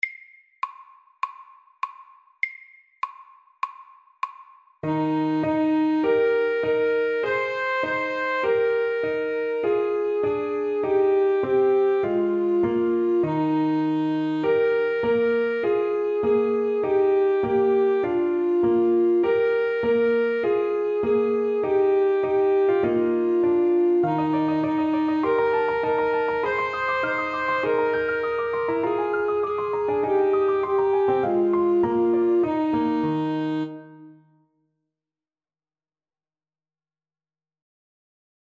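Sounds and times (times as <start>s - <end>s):
allegretto music: 4.8s - 34.5s.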